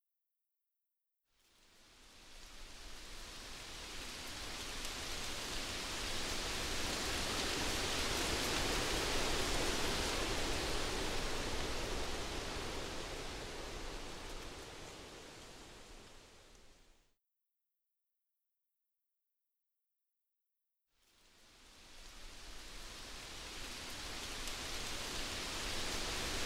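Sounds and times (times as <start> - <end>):
leaves blowing in the wind: 1.6 - 16.9, 21.3 - 26.4.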